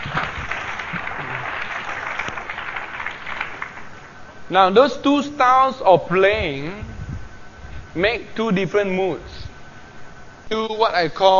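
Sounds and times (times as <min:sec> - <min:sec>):
audience applause: 0:00.0 - 0:04.1
speech: 0:04.5 - 0:06.9, 0:07.9 - 0:09.4, 0:10.5 - 0:11.3.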